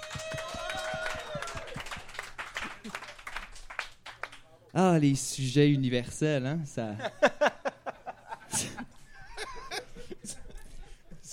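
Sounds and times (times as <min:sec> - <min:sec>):
high vocal cheer: 0:00.0 - 0:01.9
audience applause: 0:00.0 - 0:04.4
speech: 0:04.8 - 0:07.6
laughter: 0:06.8 - 0:11.3.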